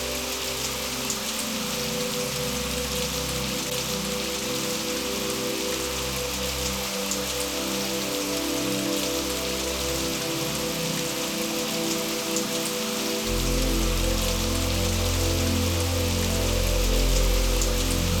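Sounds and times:
music: 0.0 - 18.1
rain: 0.0 - 18.1.

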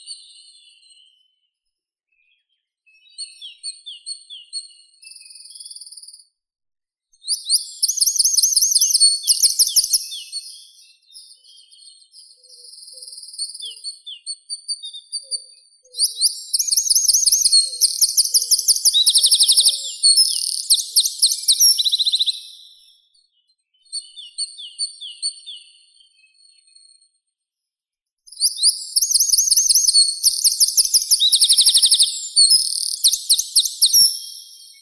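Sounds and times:
wren Troglodytes troglodytes singing: 7.3 - 10.6, 15.9 - 22.7, 28.3 - 34.8.

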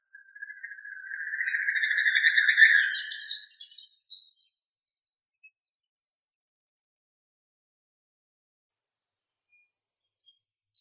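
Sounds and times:
Gallinago media great snipe calling: 0.2 - 3.5.

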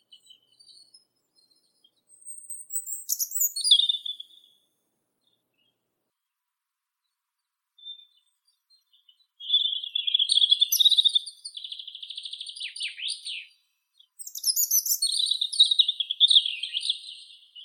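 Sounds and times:
European robin Erithacus rubecula singing: 0.0 - 5.9, 7.8 - 17.6.

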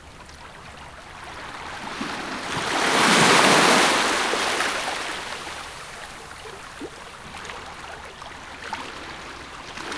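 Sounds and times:
measured rumble of waves: 1.3 - 6.1.

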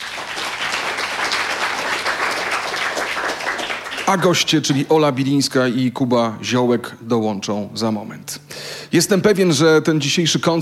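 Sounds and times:
studio audience applause: 0.0 - 4.8
speech: 4.1 - 10.6.

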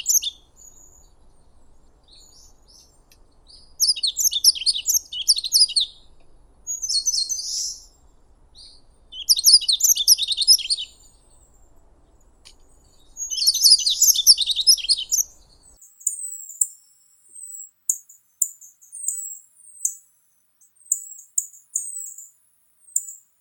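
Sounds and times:
Emberiza elegans calling: 0.0 - 11.7, 12.5 - 15.8.

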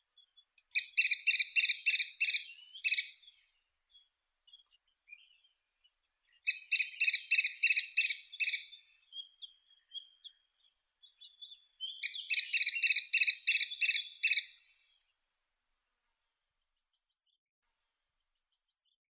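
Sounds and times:
woodpecker Dendrocopos canicapillus: 0.8 - 3.3, 6.5 - 8.9, 12.0 - 14.7.

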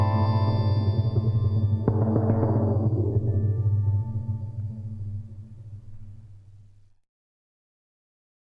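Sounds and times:
sustained organ: 0.0 - 6.2.

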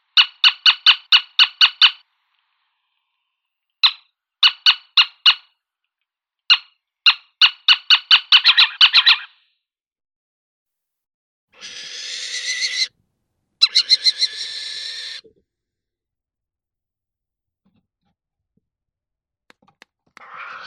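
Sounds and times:
little owl Athene noctua alarm calls: 0.1 - 2.0, 3.8 - 5.5, 6.5 - 9.4, 11.6 - 12.9, 13.6 - 15.3, 20.2 - 20.6.

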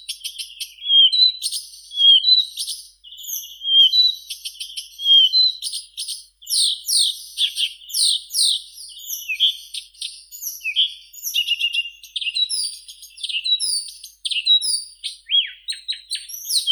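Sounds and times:
Blyth's reed warbler Acrocephalus dumetorum singing: 0.0 - 16.7.

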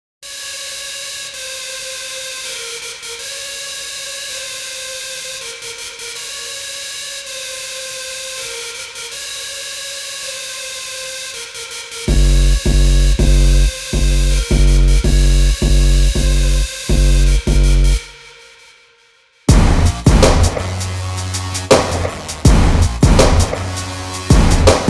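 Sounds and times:
intro instrumental music: 12.0 - 18.4, 19.5 - 24.8.

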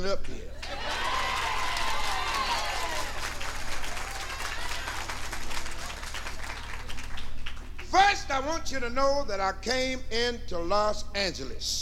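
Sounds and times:
speech: 0.0 - 0.8, 7.9 - 11.8
audience applause: 0.6 - 7.9.

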